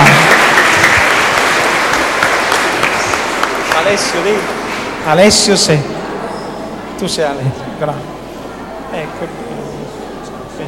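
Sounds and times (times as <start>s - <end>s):
audience applause: 0.0s - 4.9s
speech: 3.9s - 6.0s, 7.0s - 8.2s, 8.9s - 9.6s.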